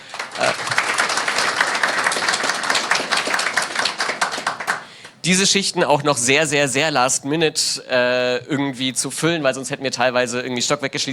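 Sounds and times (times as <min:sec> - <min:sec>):
audience applauding: 0:00.0 - 0:05.2
speech: 0:05.2 - 0:11.1.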